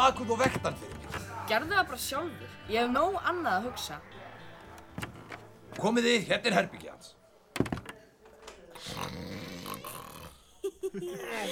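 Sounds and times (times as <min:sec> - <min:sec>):
speech: 0:00.0 - 0:04.2, 0:05.8 - 0:07.2, 0:10.9 - 0:11.5
snorts of a sleeping man: 0:08.7 - 0:10.6
sleeping man snoring loudly: 0:08.8 - 0:10.4
laughter: 0:10.3 - 0:11.5.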